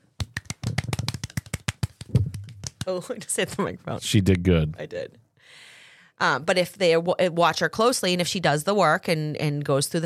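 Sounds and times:
small group applauding: 0.2s - 2.9s
speech: 2.9s - 10.0s.

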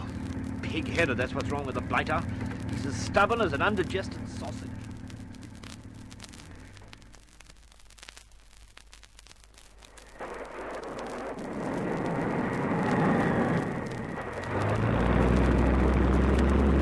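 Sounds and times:
seaplane engine roaring for takeoff: 0.0s - 5.7s, 12.4s - 16.7s
speech: 0.7s - 4.8s.

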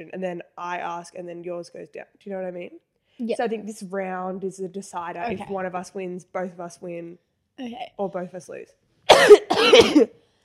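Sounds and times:
speech: 0.0s - 10.2s
person sneezing: 9.1s - 10.1s.

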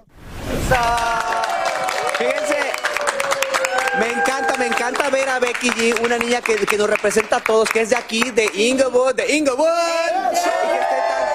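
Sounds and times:
speech: 0.7s - 1.1s, 4.9s - 10.8s
applause: 0.7s - 8.8s.

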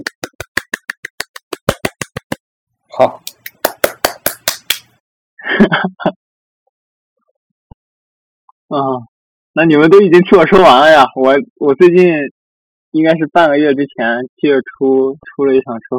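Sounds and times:
hand clapping: 0.0s - 2.4s, 3.0s - 5.0s
speech: 3.0s - 3.2s, 5.7s - 6.2s, 8.7s - 15.9s.

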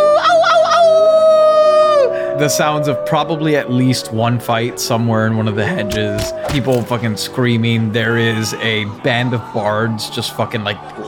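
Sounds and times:
voice imitating a howl: 0.0s - 9.6s
speech: 2.4s - 11.0s.

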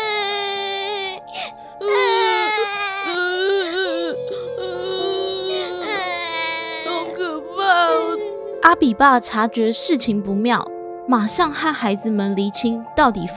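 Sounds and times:
children crying: 0.0s - 8.4s
speech: 8.8s - 13.3s.

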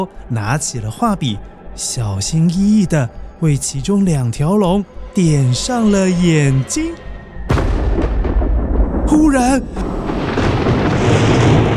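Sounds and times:
speech: 0.0s - 7.0s, 9.1s - 10.0s
loud thunderclap: 7.5s - 11.7s.

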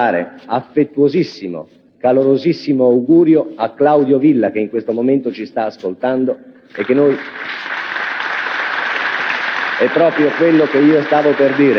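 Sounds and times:
speech: 0.0s - 7.8s, 9.8s - 11.7s
audience applause: 6.7s - 11.7s.

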